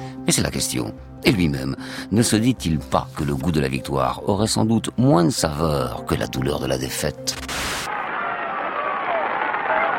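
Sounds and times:
speech: 0:00.2 - 0:07.9
crowd applause and cheering along a cycling race climb: 0:07.5 - 0:09.9.

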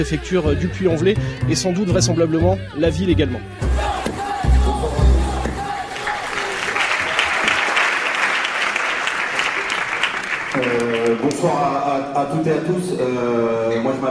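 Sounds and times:
speech: 0:00.0 - 0:04.3, 0:11.3 - 0:14.0
low thumps: 0:02.5 - 0:05.8
villagers clapping: 0:04.1 - 0:11.8.

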